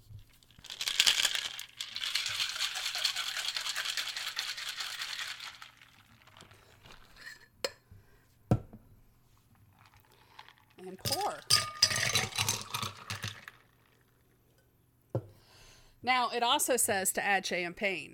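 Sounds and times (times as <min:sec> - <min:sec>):
ice rattling in a cocktail shaker: 0:00.3 - 0:07.2, 0:09.8 - 0:14.0
speech: 0:16.1 - 0:18.1.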